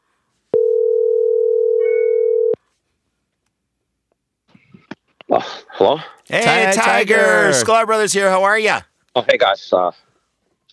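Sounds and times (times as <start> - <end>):
telephone dial tone while placing call: 0.6 - 2.6
speech: 5.4 - 10.1.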